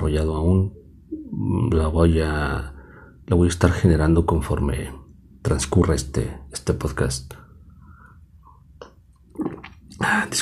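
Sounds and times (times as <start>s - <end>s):
speech: 0.1s - 0.8s, 1.4s - 7.4s, 10.0s - 10.4s
person sipping coffee: 8.8s - 10.3s.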